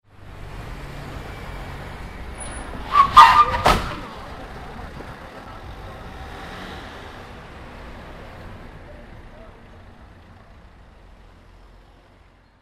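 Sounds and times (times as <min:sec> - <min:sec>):
car crash: 0:02.4 - 0:04.4.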